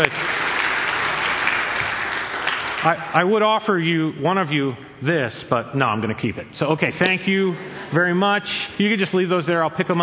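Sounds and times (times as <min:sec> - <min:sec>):
speech: 0:00.0 - 0:00.4, 0:02.8 - 0:10.0
audience applause at a church service: 0:00.0 - 0:03.0.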